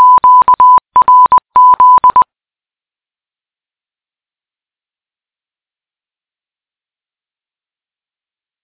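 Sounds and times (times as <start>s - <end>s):
QRZ Morse code beeps: 0.0s - 2.2s.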